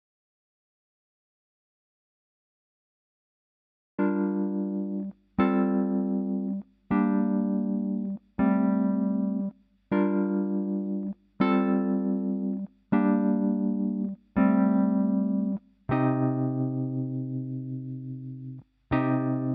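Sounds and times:
chords: 0:04.0 - 0:19.5.

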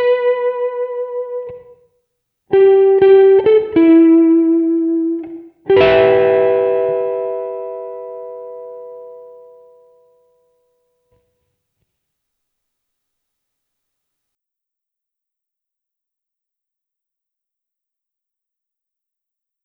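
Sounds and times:
lush guitar: 0:00.0 - 0:01.8, 0:02.5 - 0:10.2.

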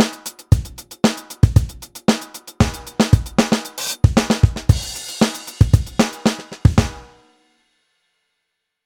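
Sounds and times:
funk music: 0:00.0 - 0:07.2.

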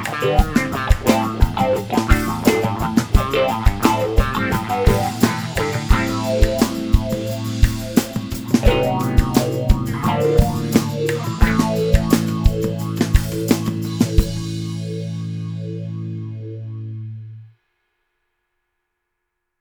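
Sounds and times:
funky rave music: 0:00.0 - 0:15.6.

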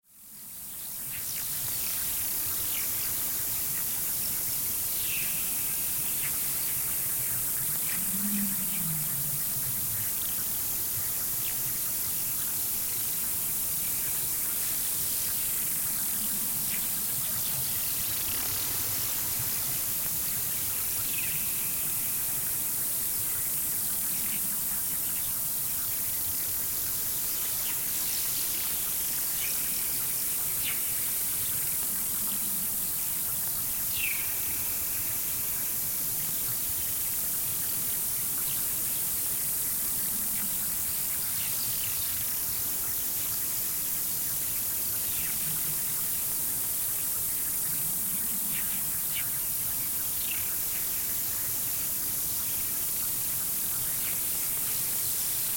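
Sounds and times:
alien jungle ambience: 0:00.1 - 0:55.5.

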